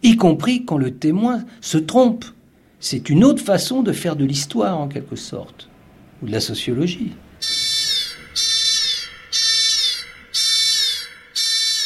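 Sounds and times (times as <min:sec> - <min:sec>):
speech: 0:00.0 - 0:07.6
intrusion alert alarm electronic bursts: 0:07.4 - 0:11.8.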